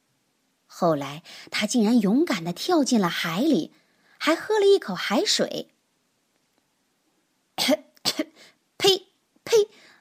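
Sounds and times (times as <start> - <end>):
speech: 0.8 - 5.7, 7.6 - 9.8
coughing: 7.6 - 8.5.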